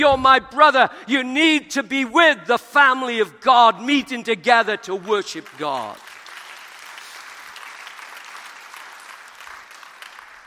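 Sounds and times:
speech: 0.0s - 6.1s
half-hearted crowd clapping: 4.9s - 10.4s.

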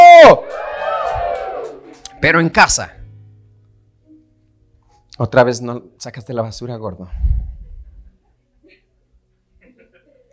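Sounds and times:
audience shout of joy: 0.0s - 2.2s
speech: 0.2s - 0.6s, 2.2s - 3.0s, 5.2s - 7.4s.

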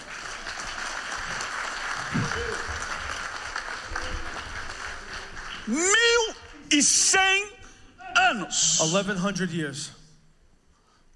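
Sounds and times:
audience applause: 0.0s - 6.5s
speech: 2.1s - 2.7s, 5.7s - 7.6s, 8.3s - 10.0s.

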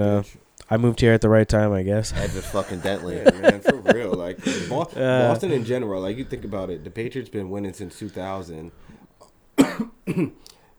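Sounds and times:
speech: 0.0s - 9.0s, 9.8s - 10.6s
laughter: 0.0s - 10.4s
sneeze or cough: 9.6s - 10.5s.

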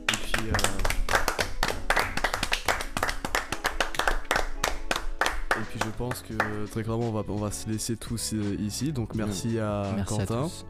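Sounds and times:
small group applauding together: 0.0s - 6.8s
speech: 5.8s - 10.6s.

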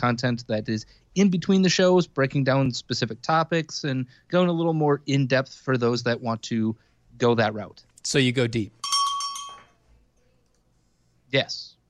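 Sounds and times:
speech: 0.0s - 8.8s, 11.3s - 11.7s
small bell dinging: 8.7s - 9.8s.

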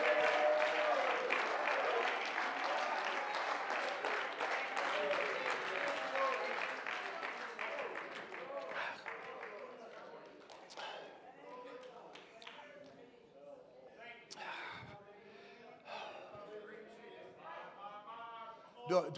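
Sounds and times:
audience clapping hands: 0.0s - 13.0s
speech: 18.9s - 19.1s.

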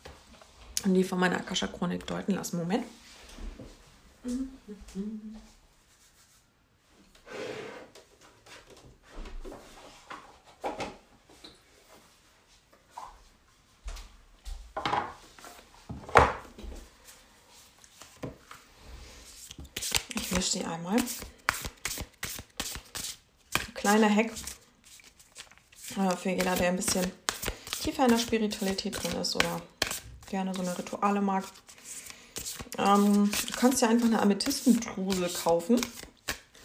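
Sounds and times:
speech: 0.8s - 3.1s, 4.2s - 5.6s, 20.8s - 21.3s, 23.9s - 24.5s, 26.0s - 27.2s, 27.9s - 29.7s, 30.3s - 31.7s, 32.8s - 36.0s
oracle cards rustling and scraping during a spiritual card reading: 19.3s - 36.6s.

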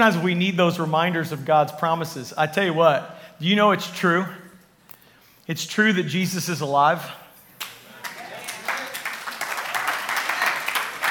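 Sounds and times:
speech: 0.0s - 4.4s, 5.5s - 7.2s
polite golf clap applause from audience: 7.6s - 11.0s.

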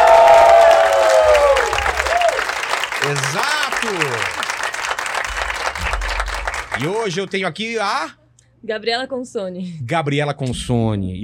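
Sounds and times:
audience applause: 0.0s - 7.5s
speech: 6.8s - 11.2s.

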